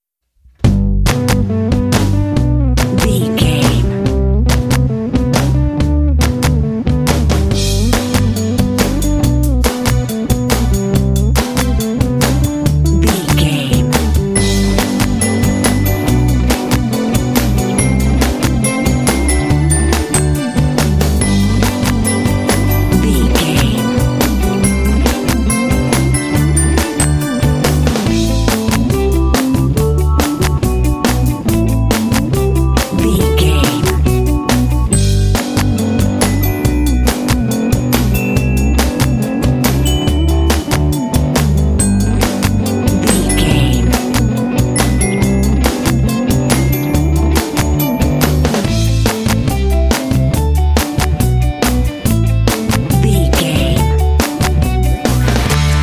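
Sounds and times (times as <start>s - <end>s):
indie pop music: 0.7s - 55.8s.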